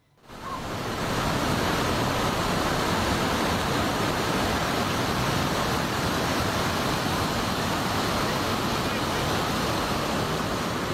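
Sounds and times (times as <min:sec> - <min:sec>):
flash flood water rushing down from a mountain in Nan province, Thailand: 0:00.2 - 0:10.9.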